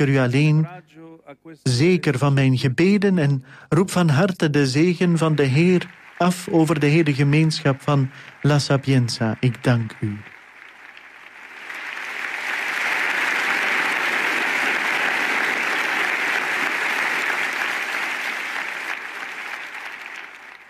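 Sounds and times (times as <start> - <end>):
speech: 0.0 - 10.3
applause from professors and students of La Sapienza University in Rome: 4.6 - 20.6.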